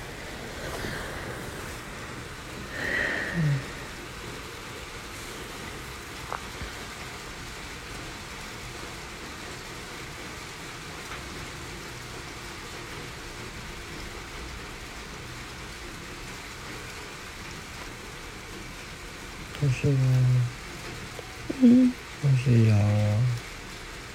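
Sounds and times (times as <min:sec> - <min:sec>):
rain falling: 0:00.0 - 0:24.1
speech: 0:03.4 - 0:03.7, 0:19.7 - 0:20.5, 0:21.6 - 0:23.3.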